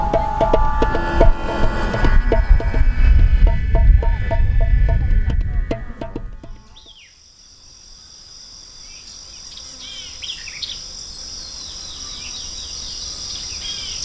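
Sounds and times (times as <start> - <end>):
guitar: 0.0 - 6.9
violin: 0.0 - 6.9.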